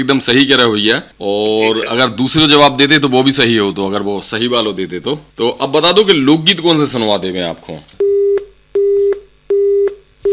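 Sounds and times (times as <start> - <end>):
speech: 0.0 - 8.4
telephone tone after call disconnected: 8.0 - 10.3.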